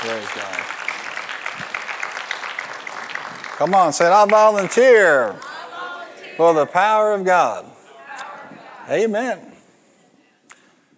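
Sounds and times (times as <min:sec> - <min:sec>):
speech: 0:00.0 - 0:00.8, 0:03.6 - 0:05.5, 0:06.4 - 0:07.8, 0:08.9 - 0:09.5
audience hand clap: 0:00.0 - 0:05.7.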